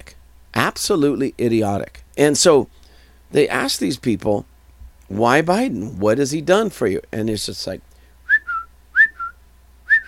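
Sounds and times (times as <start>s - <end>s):
speech: 0.8s - 4.5s, 5.1s - 7.9s
person whistling an imitation of chirping birds: 8.3s - 10.0s.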